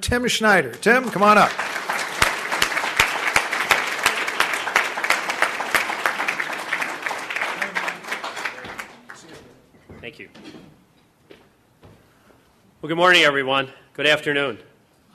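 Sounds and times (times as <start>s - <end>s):
speech: 0.0s - 1.7s, 12.8s - 15.1s
City Club audience applause welcoming a speaker: 0.8s - 9.4s.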